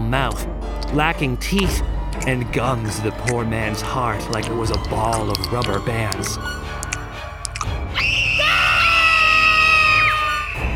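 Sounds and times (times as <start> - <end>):
speech: 0.1 - 6.8
crowd screaming in panic: 8.0 - 10.7.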